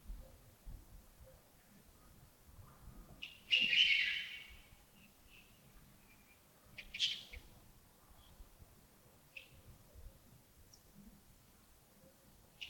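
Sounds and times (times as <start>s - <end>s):
bird calling: 3.5s - 4.5s.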